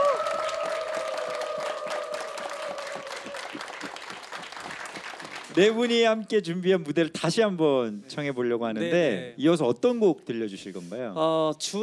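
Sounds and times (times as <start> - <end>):
audience applause and cheering: 0.0 - 5.9
speech: 5.6 - 11.8.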